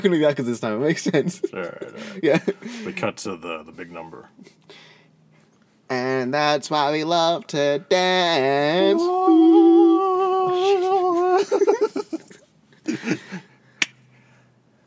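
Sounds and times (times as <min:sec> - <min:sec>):
speech: 0:00.0 - 0:04.9, 0:05.9 - 0:09.6, 0:10.6 - 0:11.7
laughter: 0:01.0 - 0:03.0, 0:10.5 - 0:13.5
slow threatening clap: 0:13.8 - 0:14.0.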